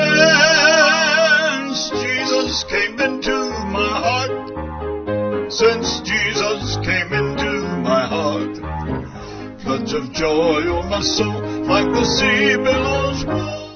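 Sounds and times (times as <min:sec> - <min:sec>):
person singing with band: 0:00.0 - 0:04.5, 0:05.5 - 0:13.7
piano with band: 0:00.0 - 0:13.7.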